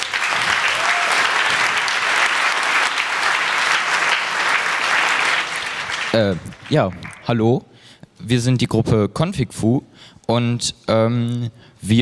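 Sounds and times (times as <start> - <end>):
audience applause: 0.0 - 7.3
speech: 6.2 - 11.9.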